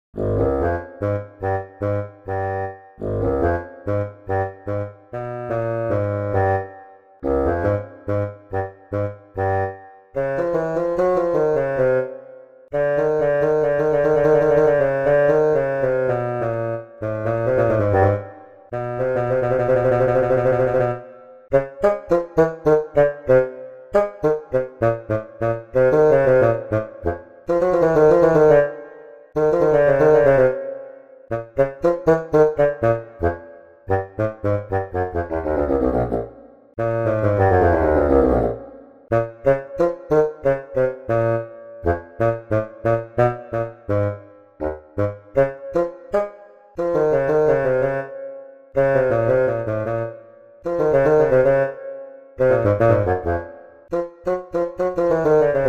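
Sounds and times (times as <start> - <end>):
bassoon: 0.2 - 48.2, 48.8 - 55.6.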